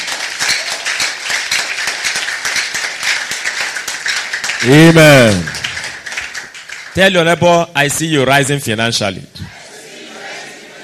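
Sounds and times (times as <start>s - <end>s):
audience clapping: 0.0s - 7.7s
speech: 4.6s - 5.6s, 7.0s - 9.5s.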